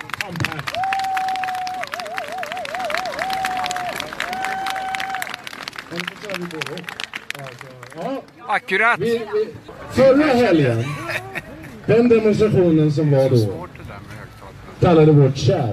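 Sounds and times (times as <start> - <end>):
crowd applauding: 0.0 - 9.0
speech: 0.3 - 0.8, 6.4 - 7.0, 7.6 - 11.2, 11.9 - 13.7, 14.8 - 15.7
laughter: 9.7 - 12.5.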